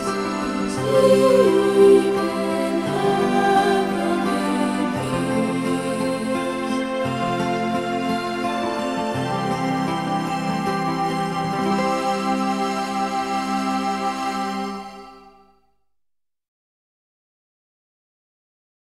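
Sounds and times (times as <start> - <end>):
person singing a Christmas carol in English: 0.0 - 15.0.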